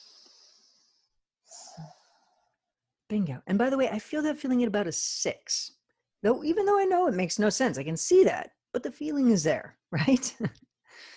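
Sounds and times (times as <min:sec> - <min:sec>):
person breathing deeply: 0:00.0 - 0:02.4
speech: 0:03.1 - 0:11.1.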